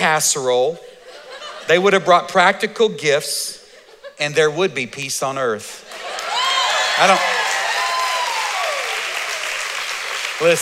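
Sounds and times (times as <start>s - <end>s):
speech: 0.0s - 0.9s, 1.7s - 3.6s, 4.2s - 6.0s, 7.0s - 7.4s, 10.4s - 10.6s
audience clapping: 5.9s - 10.6s.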